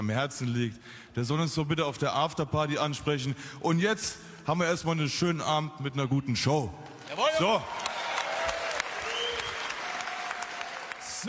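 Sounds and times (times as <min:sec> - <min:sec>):
speech: 0:00.0 - 0:07.9
audience applause: 0:07.0 - 0:11.2
faint tonal whistles: 0:09.0 - 0:09.8.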